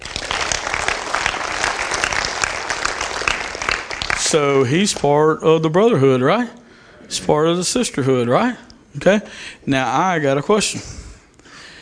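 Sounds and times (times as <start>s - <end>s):
audience clapping: 0.0s - 5.2s
speech: 4.3s - 11.0s.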